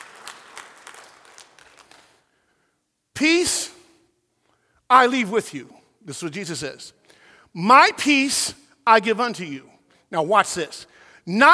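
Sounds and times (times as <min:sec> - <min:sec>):
crowd clapping: 0:00.0 - 0:02.3
speech: 0:03.2 - 0:03.7, 0:04.9 - 0:11.5.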